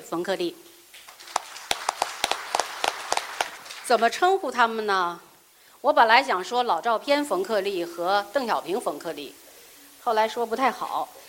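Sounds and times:
speech: 0:00.1 - 0:00.8, 0:03.9 - 0:09.4, 0:10.0 - 0:11.2
audience clapping: 0:00.9 - 0:04.3.

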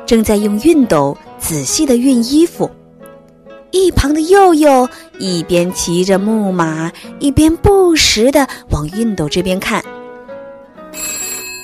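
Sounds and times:
speech: 0:00.1 - 0:02.8, 0:03.7 - 0:10.0
telephone ringing: 0:10.9 - 0:11.6.

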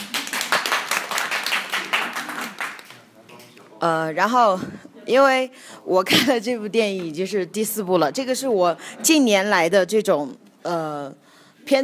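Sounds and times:
hand clapping: 0:00.0 - 0:03.1
speech: 0:03.8 - 0:11.8.

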